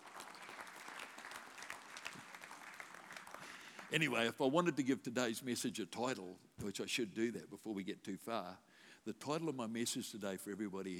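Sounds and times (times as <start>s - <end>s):
audience applause: 0.0s - 4.0s
speech: 3.9s - 10.9s.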